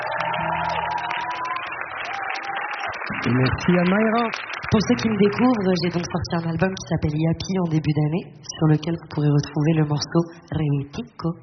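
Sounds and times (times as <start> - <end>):
whoops and yells: 0.0 - 3.0
concert audience applause at the reopening of Studio 105 at the Maison de la Radio: 0.0 - 6.6
speech: 3.2 - 11.4.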